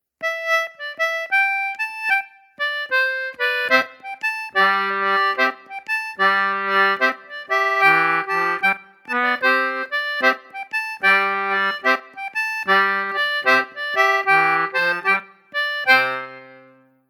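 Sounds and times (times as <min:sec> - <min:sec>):
morris dance tune intro: 0:00.2 - 0:17.0.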